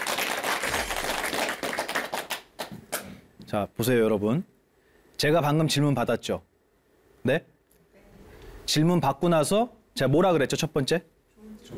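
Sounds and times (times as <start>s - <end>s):
audience applause: 0.0s - 3.1s
speech: 3.5s - 4.5s, 5.2s - 6.5s, 7.2s - 7.5s, 8.7s - 11.7s.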